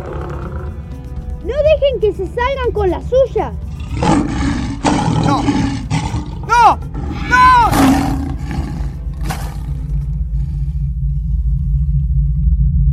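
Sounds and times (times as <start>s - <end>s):
lions roaring: 0.0s - 1.0s, 3.7s - 12.8s
speech: 2.0s - 4.4s, 5.3s - 5.7s.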